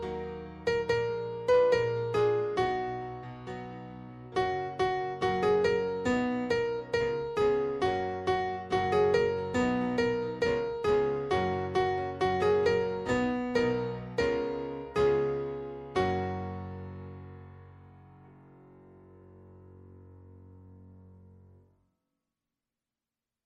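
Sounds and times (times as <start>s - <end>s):
Ab major melody: 0.0s - 17.4s.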